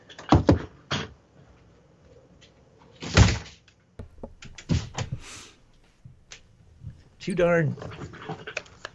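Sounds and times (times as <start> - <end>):
window being closed in a New York City home: 4.0 - 7.0
person speaking: 4.0 - 8.0.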